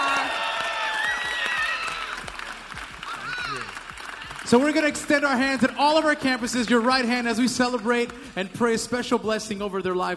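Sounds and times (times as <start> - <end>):
audience cheering: 0.0 - 5.3
audience applause: 0.0 - 8.6
speech: 4.5 - 10.1.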